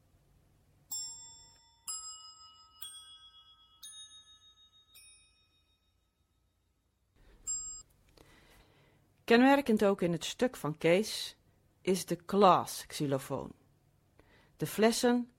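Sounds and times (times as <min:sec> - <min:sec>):
bell tree struck with thin rods: 0:00.9 - 0:06.0
speech: 0:09.3 - 0:13.6, 0:14.6 - 0:15.3.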